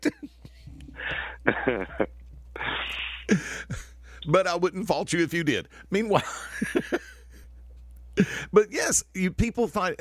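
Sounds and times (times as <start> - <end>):
harsh breathy coughing: 1.0 - 4.0
speech: 1.4 - 2.2, 2.9 - 7.1, 8.2 - 9.9.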